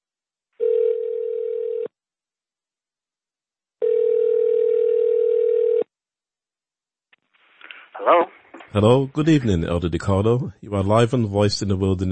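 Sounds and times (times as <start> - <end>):
telephone line tone ringing: 0.6 - 1.9, 3.8 - 5.9
speech: 8.1 - 12.1.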